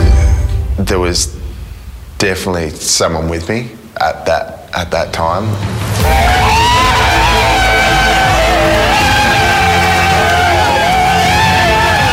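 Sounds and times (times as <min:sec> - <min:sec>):
speech: 0:00.9 - 0:01.4, 0:02.2 - 0:06.5
large crowd screaming and cheering on a beach: 0:05.9 - 0:12.1.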